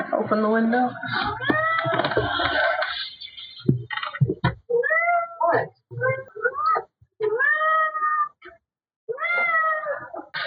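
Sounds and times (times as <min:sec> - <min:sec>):
speech: 0:00.2 - 0:02.6
cat meowing: 0:01.2 - 0:02.2, 0:04.7 - 0:08.5, 0:09.1 - 0:10.3.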